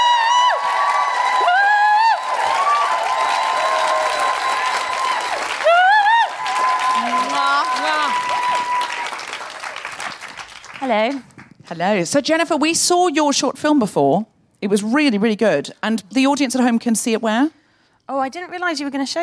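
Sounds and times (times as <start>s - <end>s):
audience applause at a live comedy show: 0.0s - 11.5s
speech: 10.9s - 19.2s.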